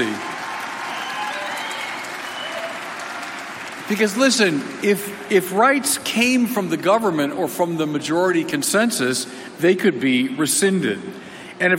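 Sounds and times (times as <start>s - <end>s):
audience clapping: 0.0s - 5.7s
speech: 3.9s - 11.7s.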